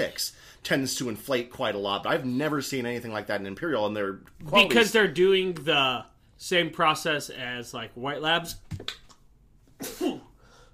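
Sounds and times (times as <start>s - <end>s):
speech: 0.0s - 9.0s
person sneezing during an allergy attack: 9.8s - 10.4s.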